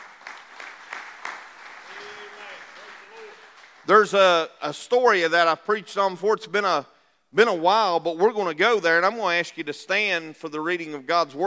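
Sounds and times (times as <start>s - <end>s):
audience hand clapping: 0.0s - 4.3s
speech: 3.9s - 11.4s.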